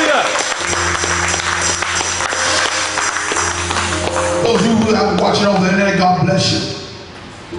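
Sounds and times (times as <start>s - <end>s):
audience clapping: 0.0s - 6.0s
speech: 5.4s - 6.7s.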